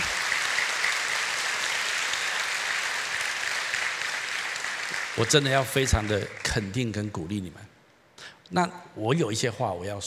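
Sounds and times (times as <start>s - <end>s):
warm audience applause: 0.0s - 6.8s
speech: 5.2s - 7.7s, 8.5s - 10.0s.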